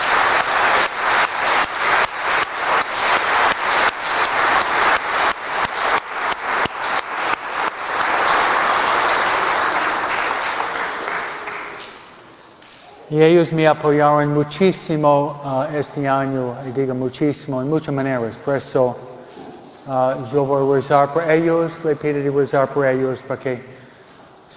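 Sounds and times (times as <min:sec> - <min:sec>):
audience clapping: 0:00.0 - 0:12.3
speech: 0:13.2 - 0:19.1, 0:19.9 - 0:23.7.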